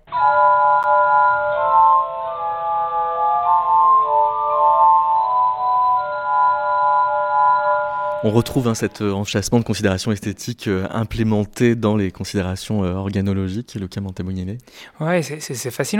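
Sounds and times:
glass harmonica playing: 0:00.2 - 0:09.0
speech: 0:08.2 - 0:15.9.

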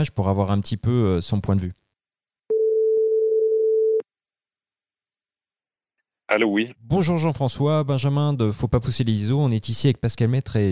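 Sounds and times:
speech: 0:00.0 - 0:01.8, 0:06.3 - 0:10.7
telephone ringing tone of an outgoing call: 0:02.5 - 0:04.0.

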